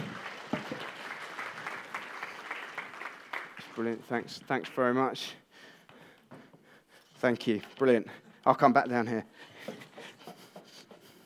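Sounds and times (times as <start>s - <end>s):
audience clapping: 0.0s - 4.8s
speech: 3.8s - 5.4s, 7.2s - 9.5s.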